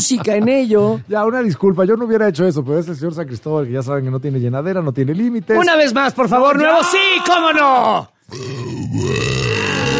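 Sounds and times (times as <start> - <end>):
speech: 0.1 - 9.6
person belching on demand: 8.3 - 9.9.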